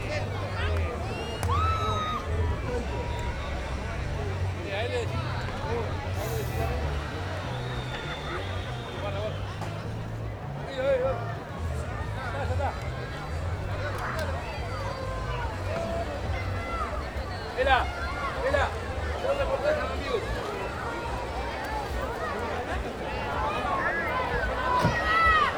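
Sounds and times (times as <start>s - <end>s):
music at a campsite: 0.0s - 25.5s
people at a campsite in Corrientes Argentina: 0.0s - 25.5s
people shouting at a campsite: 0.6s - 3.8s, 14.2s - 25.5s.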